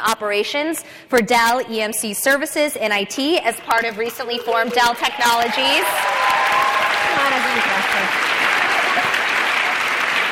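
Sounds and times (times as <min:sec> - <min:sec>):
speech: 0:00.0 - 0:06.2
people clapping: 0:03.2 - 0:10.3.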